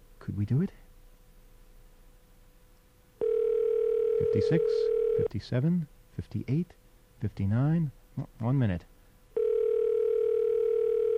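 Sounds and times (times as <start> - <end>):
speech: 0.3 - 0.8, 4.4 - 8.9
telephone ringing tone: 3.2 - 5.3, 9.4 - 11.1.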